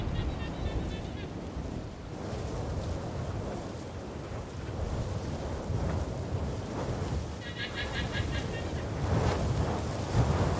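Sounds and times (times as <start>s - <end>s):
wind buffeting the microphone: 0.0s - 10.5s.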